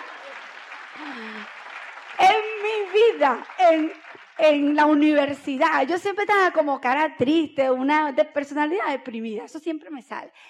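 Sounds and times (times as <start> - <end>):
audience applause: 0.0 - 5.0
speech: 1.0 - 1.6, 2.9 - 10.4.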